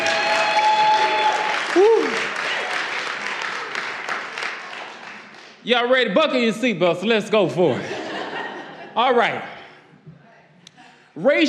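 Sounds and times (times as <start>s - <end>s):
audience clapping: 0.0s - 6.0s
speech: 5.6s - 7.9s, 9.0s - 9.5s, 11.2s - 11.4s
laughter: 7.7s - 9.3s.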